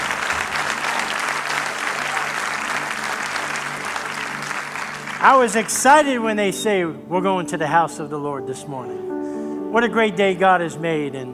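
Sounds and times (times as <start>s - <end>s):
audience applause: 0.0s - 6.3s
speech: 5.2s - 11.3s.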